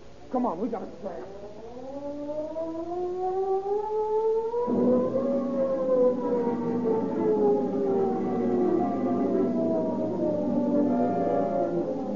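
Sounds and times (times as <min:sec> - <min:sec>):
speech: 0:00.3 - 0:02.1
prison escape siren wailing: 0:00.8 - 0:12.1.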